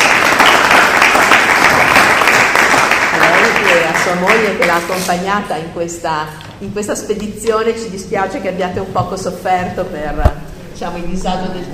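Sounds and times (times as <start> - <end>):
audience applause thanking speakers at a lecture series event: 0.0 - 4.7
speech: 4.1 - 11.7.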